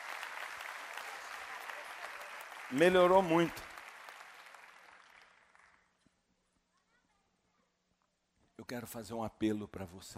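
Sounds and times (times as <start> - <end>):
audience applause: 0.0 - 5.9
speech: 2.7 - 3.7, 8.7 - 10.1.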